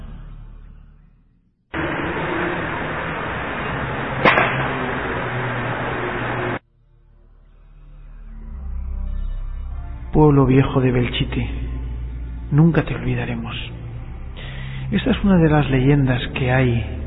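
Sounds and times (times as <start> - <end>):
loud hissing static: 1.8 - 6.6
low rumbling: 1.8 - 6.6, 9.5 - 17.0
musket shot in an EVP recording: 4.2 - 5.6
speech: 10.2 - 11.7, 12.5 - 13.8, 14.9 - 17.0.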